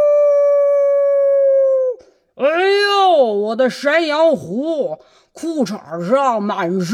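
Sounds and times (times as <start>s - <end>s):
voice imitating a wolf's howl: 0.0s - 2.2s
speech: 3.2s - 6.9s.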